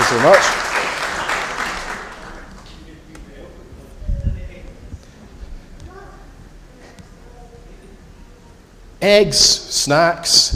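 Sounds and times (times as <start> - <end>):
audience applause for volunteers: 0.0 - 2.8
speech: 0.1 - 0.6, 9.0 - 10.5.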